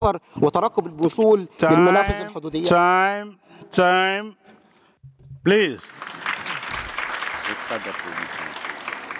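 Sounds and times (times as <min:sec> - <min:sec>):
speech: 0:00.0 - 0:04.5, 0:05.4 - 0:06.3, 0:07.5 - 0:08.6
audience applause: 0:05.8 - 0:09.1.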